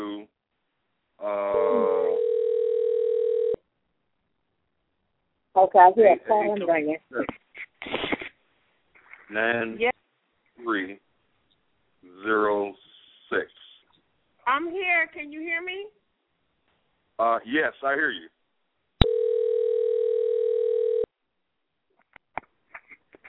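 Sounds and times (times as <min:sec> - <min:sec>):
telephone dial tone while calling: 0:02.1 - 0:03.6, 0:19.0 - 0:21.1
speech: 0:05.6 - 0:08.0, 0:09.3 - 0:10.0, 0:10.6 - 0:11.0, 0:12.2 - 0:13.6, 0:14.5 - 0:16.0, 0:17.2 - 0:18.3.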